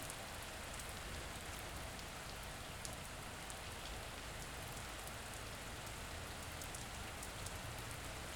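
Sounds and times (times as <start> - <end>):
rain: 0.0 - 8.3.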